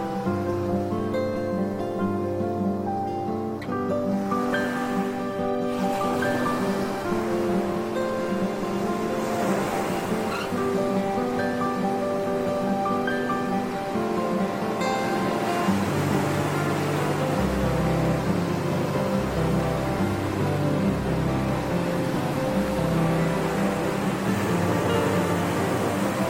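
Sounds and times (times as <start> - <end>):
ocean: 0.0 - 26.2
relaxing Hawaiian instrumental music: 0.0 - 26.2.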